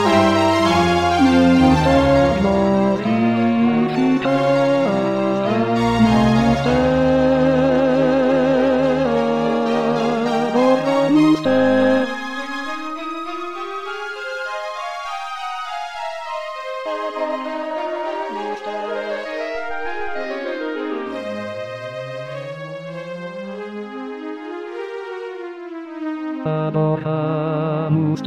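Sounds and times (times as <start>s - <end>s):
tenor singing: 0.0s - 13.1s, 16.7s - 23.6s, 26.4s - 28.2s.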